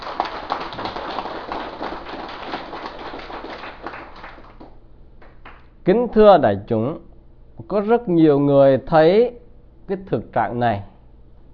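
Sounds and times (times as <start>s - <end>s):
crowd clapping: 0.0s - 5.7s
speech: 5.8s - 10.9s.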